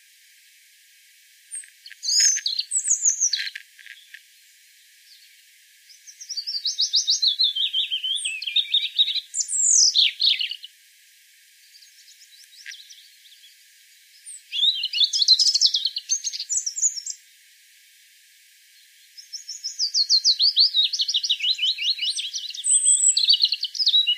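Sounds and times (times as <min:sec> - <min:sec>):
European robin singing: 0:01.5 - 0:04.2, 0:05.0 - 0:10.7, 0:11.6 - 0:17.2, 0:19.0 - 0:24.1.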